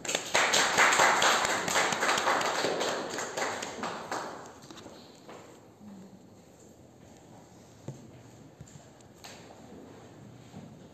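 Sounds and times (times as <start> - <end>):
audience applause welcoming a guest speaker: 0.0 - 4.5.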